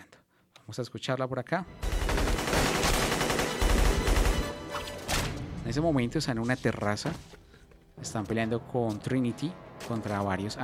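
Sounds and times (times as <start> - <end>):
speech: 0.7 - 1.9, 5.7 - 7.4, 8.0 - 10.6
rapid bursts of gunfire in a film scene: 1.7 - 5.3.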